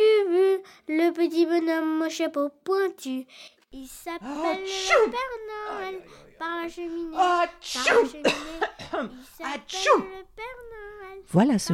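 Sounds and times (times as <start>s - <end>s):
speech: 1.1s - 11.7s
person sneezing: 4.4s - 5.2s, 7.2s - 10.1s.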